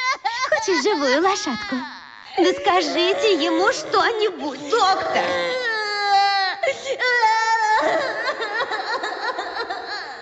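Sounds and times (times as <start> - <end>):
boy wailing and screaming: 0.0 - 8.4
speech: 0.6 - 5.6, 6.6 - 8.5
laughter: 7.8 - 10.2.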